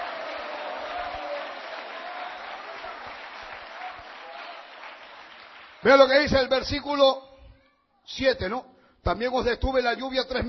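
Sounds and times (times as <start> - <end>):
church audience clapping in praise of God during a sermon: 0.0 - 6.5
speech: 5.8 - 7.3, 8.1 - 10.4.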